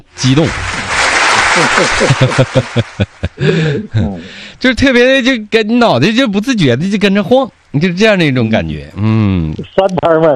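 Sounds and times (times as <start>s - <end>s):
speech: 0.2s - 0.7s, 1.6s - 10.3s
applause, hand clapping: 0.2s - 3.6s
laughter: 1.3s - 4.4s.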